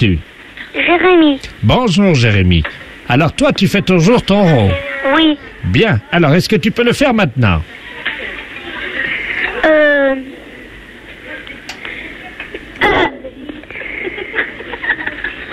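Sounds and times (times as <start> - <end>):
speech: 0.0 - 7.8
faint hiss: 0.0 - 15.5
laughter: 2.6 - 4.8, 7.7 - 9.8, 11.2 - 15.5
child burping over a telephone line: 12.8 - 13.3.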